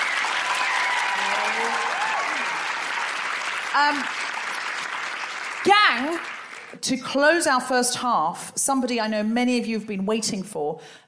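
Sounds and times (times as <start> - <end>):
audience applause: 0.0 - 6.8
speech: 3.7 - 4.2, 5.6 - 11.0.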